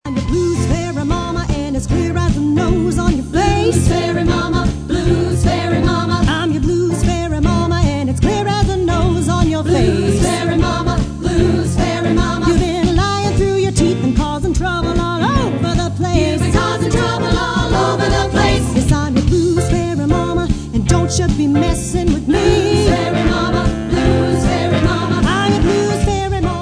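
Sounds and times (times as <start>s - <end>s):
blues music: 0.0s - 26.6s.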